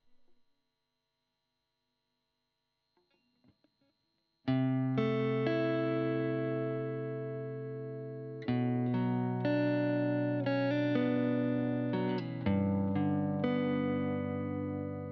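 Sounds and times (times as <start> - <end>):
guitar recorded with Royer microphone: 4.5 - 15.1.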